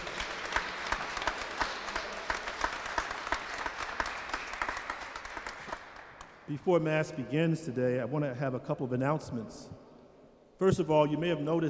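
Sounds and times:
audience applause in church: 0.0s - 6.4s
speech: 6.5s - 9.8s, 10.6s - 11.6s.

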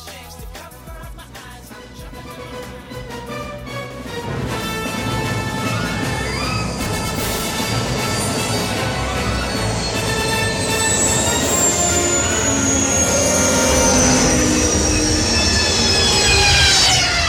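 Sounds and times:
high whining tones: 1.7s - 17.2s
sci-fi escape pod landing rumbling roar: 4.0s - 17.2s.

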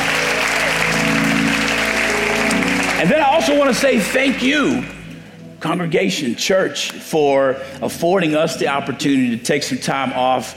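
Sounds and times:
audience applause: 0.0s - 5.0s
speech: 3.0s - 5.0s, 5.6s - 10.5s.

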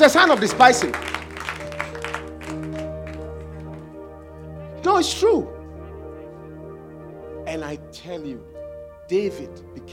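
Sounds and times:
speech: 0.0s - 1.2s, 4.8s - 5.6s, 7.5s - 8.5s, 9.1s - 9.9s
audience applause: 0.0s - 3.9s
sustained low organ-like chords: 0.0s - 9.9s.

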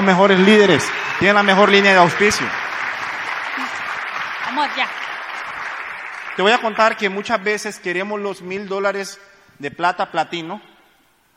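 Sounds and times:
speech: 0.0s - 2.6s, 4.6s - 5.0s, 6.4s - 10.7s
crowd applauding: 0.0s - 7.8s.

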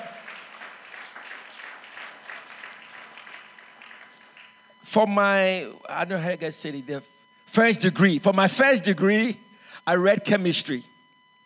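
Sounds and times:
audience clapping: 0.0s - 4.6s
speech: 4.9s - 10.9s.

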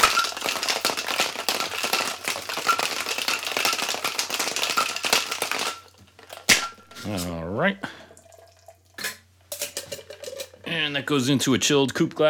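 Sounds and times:
cocktail shaker rattling with a large ice cube: 0.0s - 7.3s
speech: 7.1s - 8.0s, 10.8s - 12.2s.

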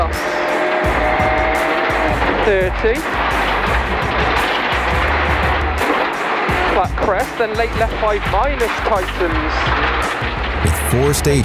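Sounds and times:
rally car engine roaring on a stage: 0.0s - 11.4s
speech: 2.4s - 3.3s, 6.8s - 11.4s.

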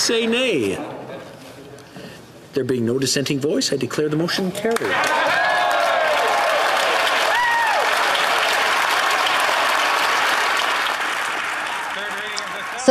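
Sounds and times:
speech: 0.0s - 1.1s, 2.6s - 5.3s
parliament members applauding: 4.7s - 12.9s.

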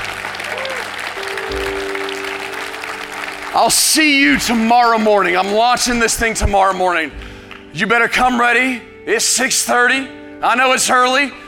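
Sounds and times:
audience clapping: 0.0s - 6.1s, 7.2s - 7.8s
speech: 3.6s - 11.4s.

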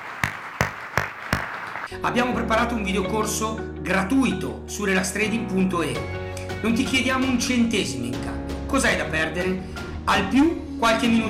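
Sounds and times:
audience applause: 0.0s - 1.9s
speech: 1.9s - 11.2s.

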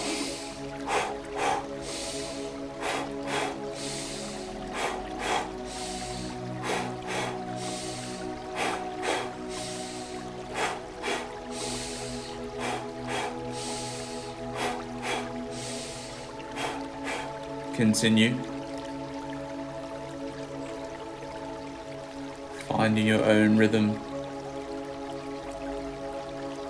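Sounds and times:
guided meditation double exhales through the mouth: 0.0s - 17.4s
guided meditation inhaling through the nose: 0.0s - 17.4s
soft sustained musical tones: 0.0s - 26.6s
speech: 17.8s - 18.5s, 22.9s - 24.1s.

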